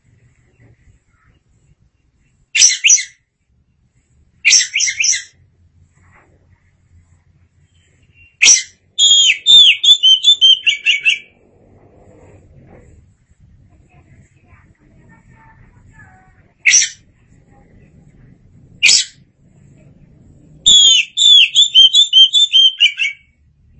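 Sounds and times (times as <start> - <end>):
Oriental magpie-robin song: 2.6 - 3.2, 4.4 - 5.4, 8.1 - 11.3, 16.6 - 17.0, 18.8 - 19.2, 20.6 - 23.3.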